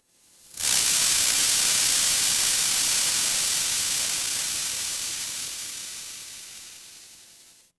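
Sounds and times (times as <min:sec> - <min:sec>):
fire electric spark: 0:00.5 - 0:07.7.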